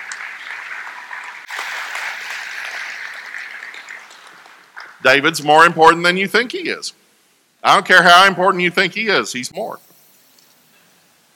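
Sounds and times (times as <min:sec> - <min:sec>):
crowd applause: 0:00.0 - 0:05.0
speech: 0:05.0 - 0:07.0, 0:07.6 - 0:09.9.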